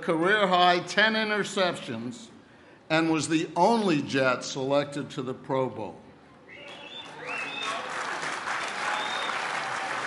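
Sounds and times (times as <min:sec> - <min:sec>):
speech: 0:00.0 - 0:06.0
audience applauding: 0:06.6 - 0:10.0.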